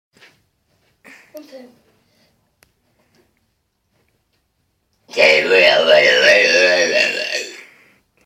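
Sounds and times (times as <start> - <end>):
person burping: 5.1 - 7.8.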